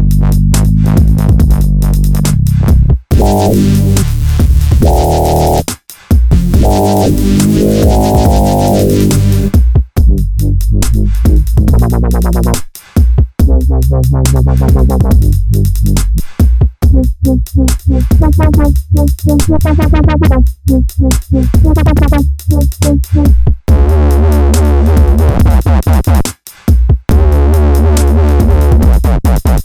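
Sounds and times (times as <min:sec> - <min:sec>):
dubstep bass: 0:00.0 - 0:05.7, 0:06.3 - 0:12.6, 0:13.4 - 0:26.2, 0:27.1 - 0:29.6.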